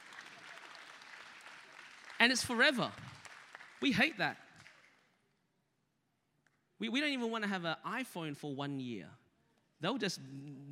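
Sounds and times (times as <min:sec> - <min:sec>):
distant audience clapping: 0:00.0 - 0:05.2
speech: 0:02.2 - 0:03.1, 0:03.8 - 0:04.4, 0:06.8 - 0:09.2, 0:09.8 - 0:10.7.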